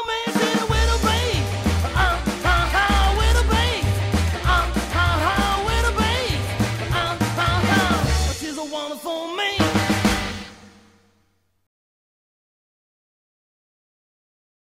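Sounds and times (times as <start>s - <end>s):
rockabilly music: 0.0s - 11.0s.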